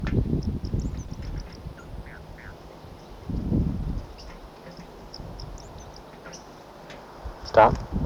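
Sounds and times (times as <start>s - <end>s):
wild birds chirping and squeaking: 0.0s - 8.0s
speech: 7.6s - 7.9s.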